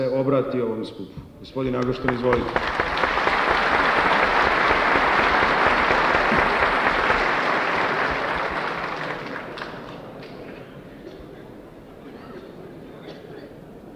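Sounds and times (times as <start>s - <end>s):
speech: 0.0s - 3.2s
audience applause at a formal assembly: 1.8s - 10.8s.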